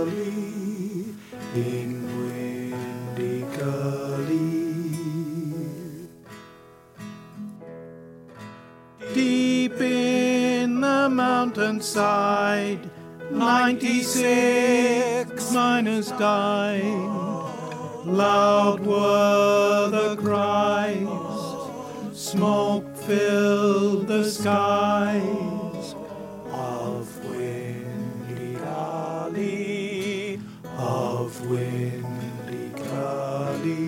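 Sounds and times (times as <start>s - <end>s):
person singing lead vocal: 0.0s - 6.2s, 9.0s - 33.8s.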